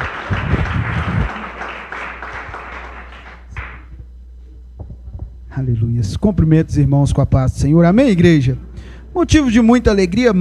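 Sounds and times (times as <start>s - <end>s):
audience applause: 0.0s - 3.9s
speech: 5.6s - 10.3s.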